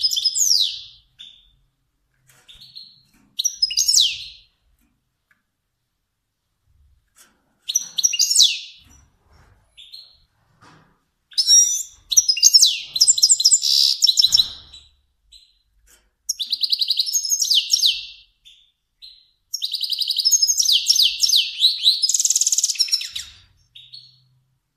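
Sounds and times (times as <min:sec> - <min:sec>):
finch singing: 0:00.0 - 0:01.6, 0:02.5 - 0:04.5, 0:07.7 - 0:09.0, 0:11.3 - 0:15.6, 0:16.3 - 0:24.4.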